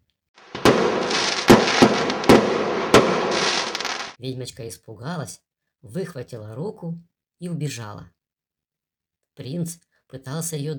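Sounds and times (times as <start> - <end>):
dense crackle and hiss of fireworks: 0.4 - 4.2
salute fireworks bursting outdoors: 0.4 - 4.2
speech: 4.2 - 8.2, 9.4 - 10.7.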